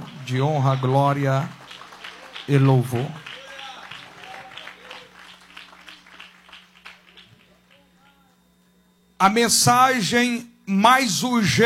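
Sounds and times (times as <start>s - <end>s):
audience applauding: 0.0s - 8.4s
speech: 0.3s - 1.6s, 2.5s - 3.2s, 9.2s - 11.6s.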